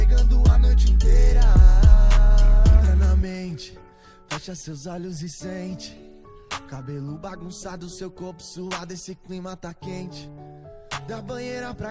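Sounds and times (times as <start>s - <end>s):
deep bass: 0.0s - 3.2s.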